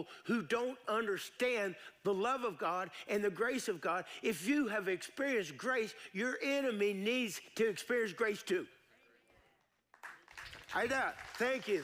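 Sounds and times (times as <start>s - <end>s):
speech: 0.0s - 8.8s, 10.7s - 11.8s
audience clapping: 9.8s - 11.8s.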